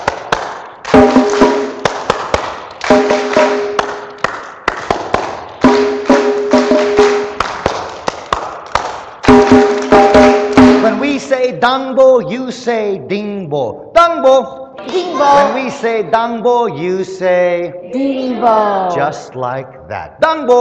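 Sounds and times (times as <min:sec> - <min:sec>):
hand claps: 0:00.0 - 0:11.0
speech: 0:11.6 - 0:20.5.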